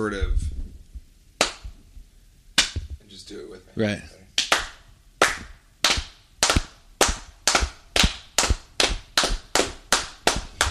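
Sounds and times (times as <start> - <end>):
speech: 0.0 - 0.6, 3.3 - 4.1
rhythmic synchronized hand clapping: 1.4 - 1.7, 2.6 - 3.0, 4.4 - 10.6.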